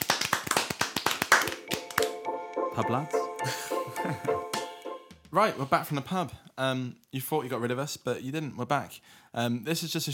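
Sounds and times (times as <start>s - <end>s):
hand clap: 0.0s - 2.6s
speech: 2.8s - 4.6s, 5.3s - 10.1s.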